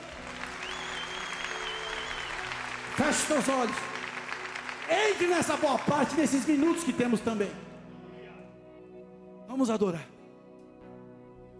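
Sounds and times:
audience applause: 0.0s - 7.4s
speech: 3.0s - 3.9s, 4.9s - 7.7s, 9.6s - 10.1s.

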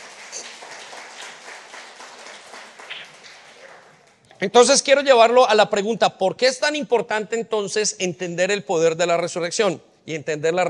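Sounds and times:
church audience applauding: 0.0s - 4.2s
speech: 4.4s - 10.6s.

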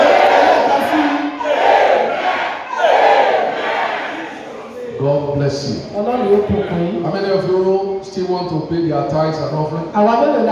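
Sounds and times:
crowd shouting together: 0.0s - 5.1s, 6.0s - 7.4s
speech: 5.3s - 10.5s.

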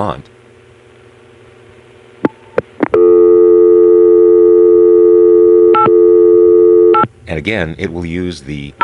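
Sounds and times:
speech: 0.0s - 0.3s, 7.3s - 8.8s
telephone tone blips on a crossbar tandem line to a vacant code in area code 802: 2.3s - 7.1s
steady telephone tone on a crossbar tandem line to a vacant code in area code 802: 2.9s - 7.0s.

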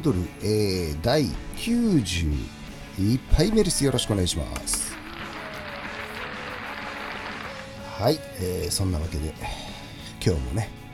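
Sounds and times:
speech: 0.0s - 5.0s, 8.0s - 10.8s
mechanical applause sound effect: 4.9s - 7.8s.

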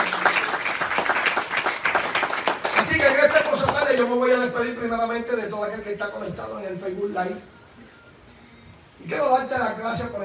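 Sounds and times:
audience applause: 0.0s - 4.1s
speech: 4.0s - 7.5s, 9.1s - 10.2s.

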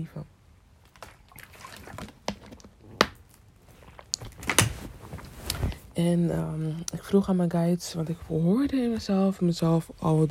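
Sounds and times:
speech: 0.0s - 0.4s, 6.0s - 10.3s
faint rustling and handling: 3.2s - 9.6s.

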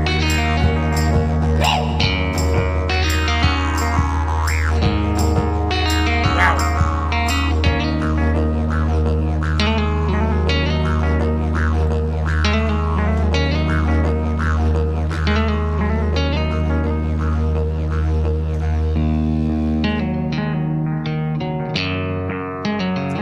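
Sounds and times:
didgeridoo played with echo pedal: 0.0s - 23.2s.

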